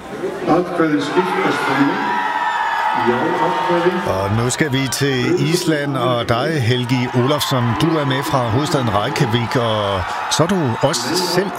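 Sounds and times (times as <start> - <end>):
crowd cheering: 0.0 - 11.5
speech: 0.2 - 2.2, 3.0 - 11.5.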